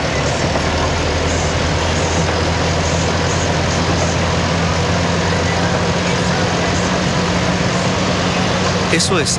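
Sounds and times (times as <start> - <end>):
vehicle engine driving through flooded street: 0.0 - 9.3.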